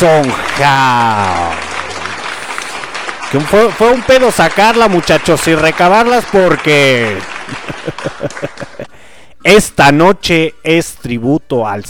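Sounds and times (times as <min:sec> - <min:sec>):
speech: 0:00.0 - 0:01.6, 0:03.3 - 0:11.8
applause: 0:00.0 - 0:08.9
laughter: 0:07.1 - 0:09.0.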